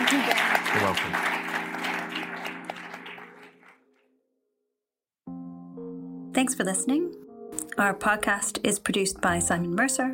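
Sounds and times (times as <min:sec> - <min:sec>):
audience applause thanking a speaker after a talk: 0:00.0 - 0:03.8
speech: 0:06.4 - 0:10.1.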